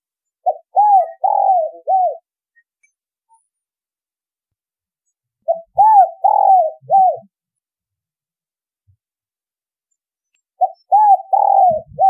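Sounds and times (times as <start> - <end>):
spotted dove cooing: 0.4 - 2.3, 5.4 - 7.3, 10.6 - 12.0.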